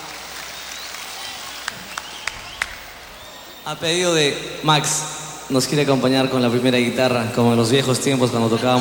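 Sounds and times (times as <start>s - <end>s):
audience applause: 0.0s - 4.6s
speech: 3.6s - 8.7s.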